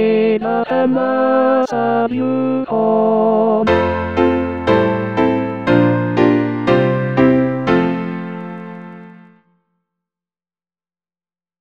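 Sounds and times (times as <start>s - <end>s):
tenor singing: 0.2s - 9.2s.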